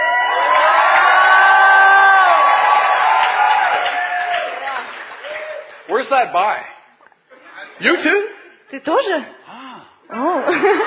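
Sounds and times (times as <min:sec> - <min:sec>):
audience shouting and cheering: 0:00.0 - 0:06.0
speech: 0:06.1 - 0:06.7, 0:07.8 - 0:09.4, 0:10.1 - 0:10.8.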